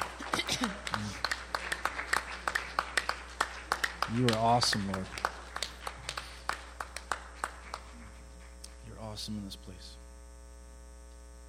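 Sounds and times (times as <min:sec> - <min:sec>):
audience clapping: 0:00.0 - 0:09.1
speech: 0:04.1 - 0:05.2, 0:09.2 - 0:10.0.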